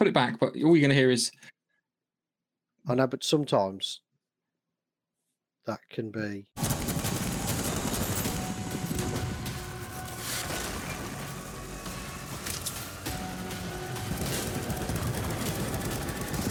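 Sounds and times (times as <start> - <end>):
speech: 0.0 - 1.5, 2.8 - 4.0, 5.6 - 7.0
video game gunfire: 6.6 - 11.2, 13.1 - 16.4.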